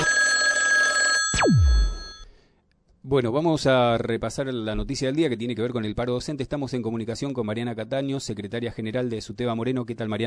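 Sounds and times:
telephone ringing for a radio call to a listener in Palermo: 0.0s - 2.3s
speech: 3.0s - 10.2s.

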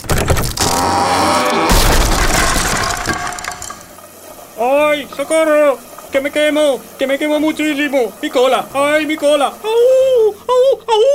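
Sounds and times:
cartoonish scraping and clattering into a metal cauldron: 0.0s - 4.2s
heavy crashing impact into a metal cauldron: 0.5s - 4.2s
speech: 5.0s - 11.1s.

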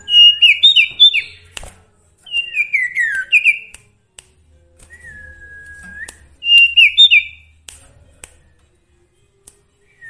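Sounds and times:
sooty-headed bulbul song: 0.0s - 7.8s.

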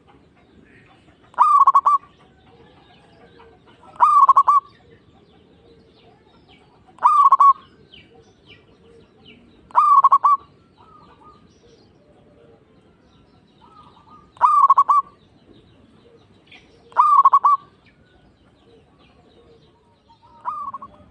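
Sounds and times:
zebra dove cooing: 0.7s - 6.3s, 6.9s - 12.7s, 13.6s - 15.2s, 15.9s - 17.9s, 18.5s - 21.0s.

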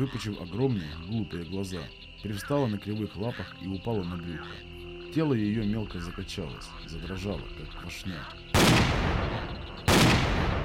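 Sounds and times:
speech: 0.0s - 9.4s
gunshots: 8.5s - 10.6s.

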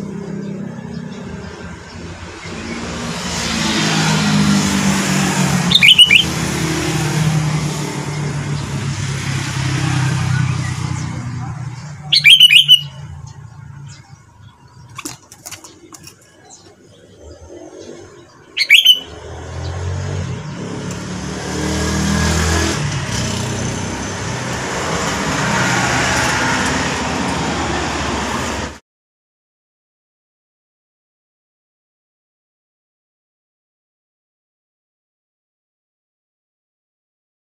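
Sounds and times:
road traffic: 0.0s - 28.8s
sooty-headed bulbul whistling: 5.7s - 6.3s, 12.0s - 13.1s, 18.5s - 19.3s.

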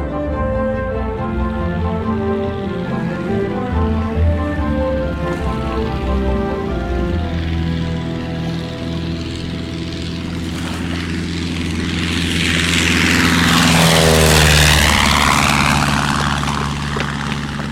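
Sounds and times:
airplane to South America flying away: 0.0s - 17.6s.

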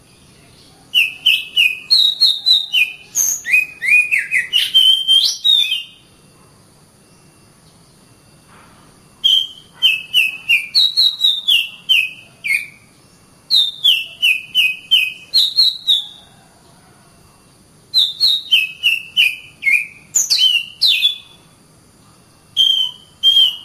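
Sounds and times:
Oriental magpie-robin song: 0.0s - 6.1s, 9.2s - 16.2s, 17.9s - 21.4s, 22.5s - 23.6s.

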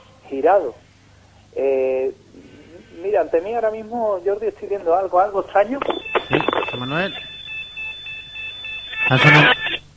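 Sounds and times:
speech: 0.3s - 0.8s, 1.5s - 6.0s, 6.7s - 7.3s, 9.1s - 9.6s
volumetric motion sensor alarms going off in a house said to be haunted: 5.9s - 9.8s.

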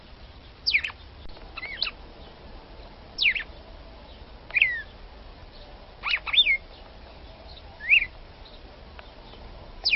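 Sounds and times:
red-cowled cardinal female singing short sweeping whistles: 0.6s - 1.0s, 1.6s - 2.0s, 3.2s - 3.5s, 4.5s - 4.9s, 6.0s - 6.6s, 7.8s - 8.1s.

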